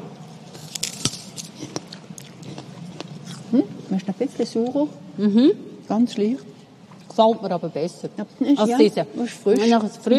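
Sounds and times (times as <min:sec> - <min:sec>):
person biting into and chewing a ripe fruit: 0:00.4 - 0:03.9
speech: 0:03.5 - 0:06.5, 0:07.2 - 0:10.1.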